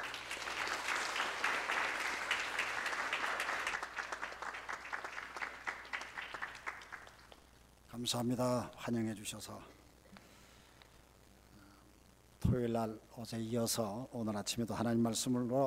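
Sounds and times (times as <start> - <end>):
audience applauding: 0.0 - 7.5
speech: 8.0 - 9.8, 12.5 - 15.6.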